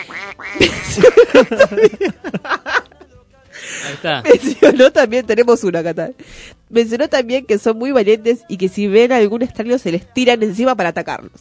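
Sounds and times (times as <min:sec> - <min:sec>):
geese honking loudly: 0:00.0 - 0:00.9
speech: 0:00.3 - 0:02.5, 0:04.0 - 0:11.3
laughter: 0:00.6 - 0:05.0.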